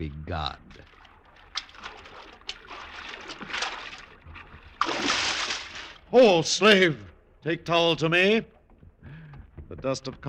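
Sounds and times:
speech: 0.0s - 0.9s, 6.1s - 8.6s, 9.7s - 10.2s
man swimming and splashing: 0.7s - 6.4s.

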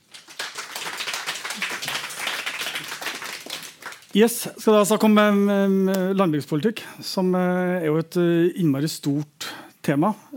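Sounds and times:
audience applause welcoming a speaker: 0.0s - 4.2s
speech: 4.1s - 10.3s.

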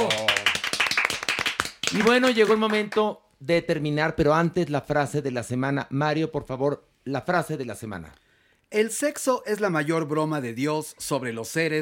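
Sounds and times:
hands clapping: 0.0s - 3.2s
speech: 1.9s - 11.8s.

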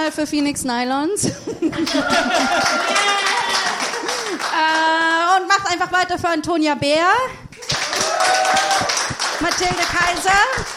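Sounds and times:
speech: 0.1s - 3.3s, 4.5s - 7.4s, 9.4s - 10.7s
laughter: 1.3s - 4.5s
crowd applauding: 1.7s - 5.1s, 7.6s - 10.7s
voices whooping and cheering: 1.8s - 4.1s, 7.6s - 9.2s.

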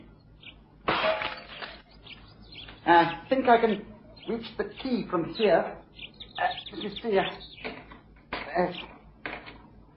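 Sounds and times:
window glass being smashed: 0.9s - 1.8s
speech: 2.9s - 7.6s, 8.6s - 9.0s.

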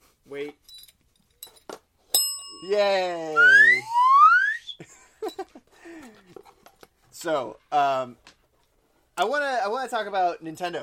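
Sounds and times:
news bell ringing: 2.2s - 3.6s
speech: 2.6s - 3.9s, 7.2s - 8.3s, 9.2s - 10.8s.

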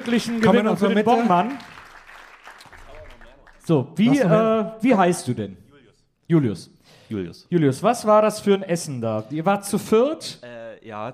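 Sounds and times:
speech: 0.0s - 1.8s, 3.7s - 5.6s, 6.3s - 11.1s
audience applause: 0.0s - 3.7s.

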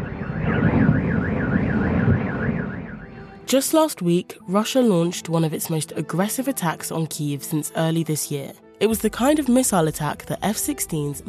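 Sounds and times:
fire in Ukraine's capital: 0.0s - 3.1s
sirens over Ukraine's capital: 0.0s - 3.5s
speech: 3.5s - 11.2s.

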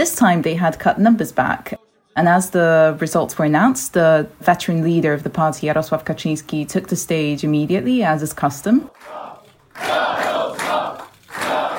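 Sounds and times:
speech: 0.0s - 10.6s
crowd chanting at election night rally: 1.7s - 2.4s, 8.8s - 11.7s.

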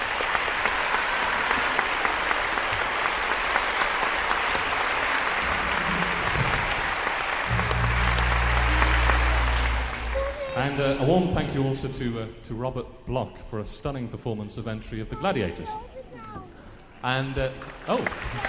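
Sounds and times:
applause: 0.0s - 11.1s, 17.2s - 18.4s
speech: 10.6s - 15.9s, 17.0s - 18.4s.

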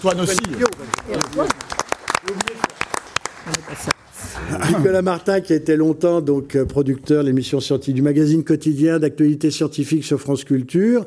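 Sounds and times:
speech: 0.0s - 2.4s, 3.8s - 11.0s
audience applause: 0.0s - 4.6s.

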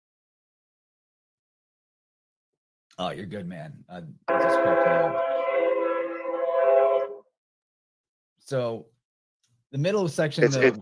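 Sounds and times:
speech: 3.0s - 5.4s, 8.5s - 8.9s, 9.7s - 10.8s
train horn blast: 4.3s - 7.3s.

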